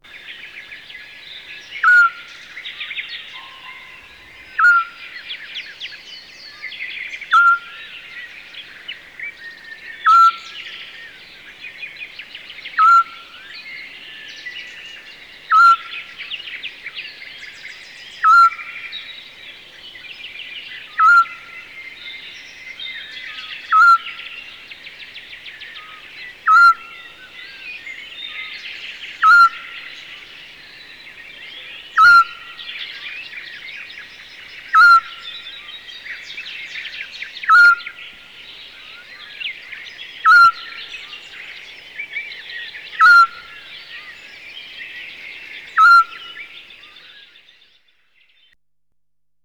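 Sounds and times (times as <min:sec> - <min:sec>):
bird sounds: 0:00.0 - 0:48.6
long-eared owl calls: 0:01.8 - 0:02.3, 0:03.2 - 0:05.1, 0:07.2 - 0:08.0, 0:10.0 - 0:10.9, 0:12.7 - 0:13.4, 0:15.5 - 0:16.2, 0:18.2 - 0:18.9, 0:20.8 - 0:21.8, 0:23.3 - 0:24.6, 0:25.6 - 0:27.3, 0:28.3 - 0:30.9, 0:31.6 - 0:33.2, 0:34.1 - 0:38.2, 0:40.2 - 0:41.5, 0:42.1 - 0:44.1, 0:45.4 - 0:47.1.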